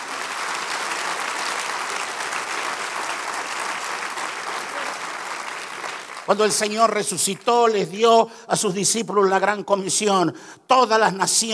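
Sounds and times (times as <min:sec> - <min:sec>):
audience applause: 0:00.0 - 0:07.5
speech: 0:06.3 - 0:11.5.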